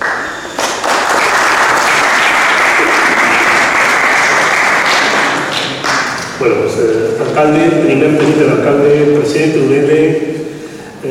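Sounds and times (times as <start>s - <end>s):
audience applause: 0.0s - 6.4s
speech: 6.4s - 11.1s.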